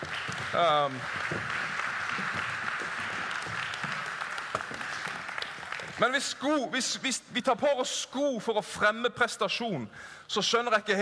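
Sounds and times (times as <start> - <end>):
speech: 0.0 - 1.6, 6.0 - 10.9
audience applause: 0.0 - 6.6.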